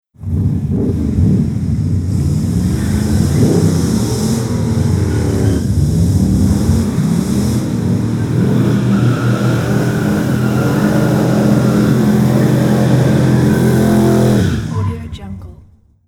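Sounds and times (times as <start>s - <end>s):
muscle car burnouts: 0.2s - 16.0s.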